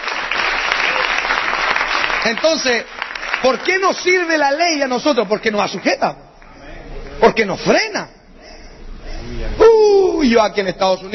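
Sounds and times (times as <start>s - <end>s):
audience clapping: 0.0s - 7.2s
speech: 2.2s - 6.2s, 7.2s - 8.2s, 9.6s - 11.1s.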